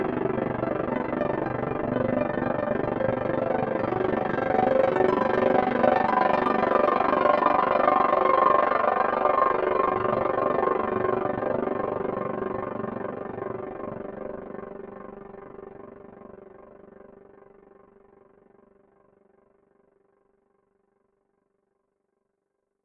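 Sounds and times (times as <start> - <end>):
piano: 0.0 - 16.1.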